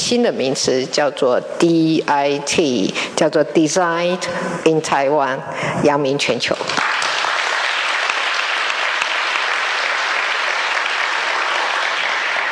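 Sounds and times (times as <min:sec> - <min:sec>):
speech: 0:00.1 - 0:07.0
audience applause: 0:06.8 - 0:12.5.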